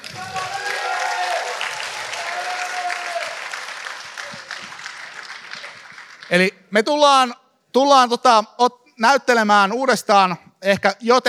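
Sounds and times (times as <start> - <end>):
faint voices and cheers: 0.0 - 6.1
audience applause: 0.0 - 6.5
speech: 6.3 - 11.2.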